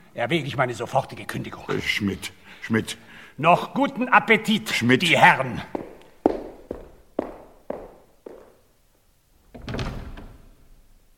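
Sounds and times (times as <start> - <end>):
speech: 0.2 - 5.8
firm footsteps of a man leaving: 5.5 - 8.7.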